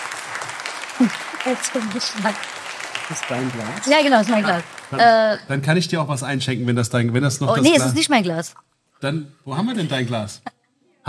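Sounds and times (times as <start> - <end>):
applause: 0.0 - 5.4
speech: 1.0 - 11.0
laughter: 9.5 - 10.5.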